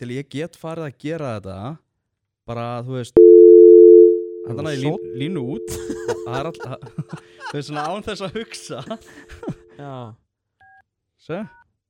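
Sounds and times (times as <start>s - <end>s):
speech: 0.0s - 1.8s, 2.5s - 3.2s, 4.5s - 10.2s, 11.2s - 11.6s
phone keypad dual-tone dialing beeps: 3.2s - 6.8s
laughter: 5.7s - 9.6s.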